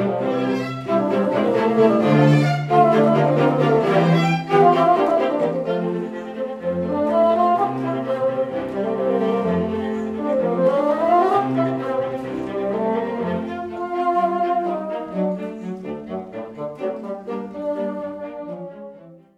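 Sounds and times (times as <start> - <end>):
bassoon quartet: 0.0 - 19.3.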